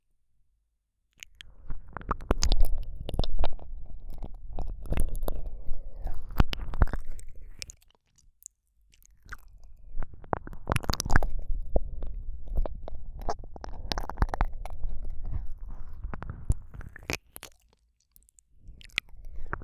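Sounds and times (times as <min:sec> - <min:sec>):
gentle ASMR ear licking sounds: 0:01.2 - 0:08.0, 0:09.0 - 0:17.8.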